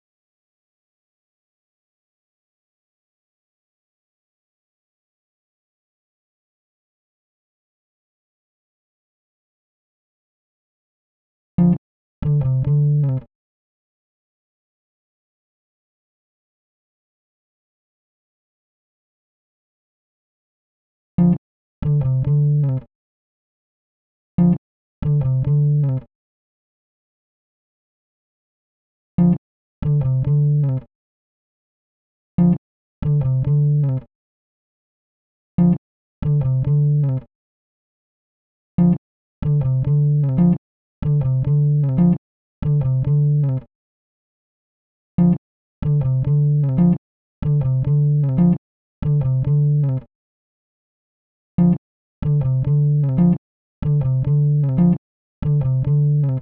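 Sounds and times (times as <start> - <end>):
bass: 11.6 - 13.3, 21.2 - 22.9, 24.4 - 26.1, 29.2 - 30.9, 32.4 - 34.1, 35.6 - 37.3, 38.8 - 43.7, 45.2 - 50.1, 51.6 - 56.3.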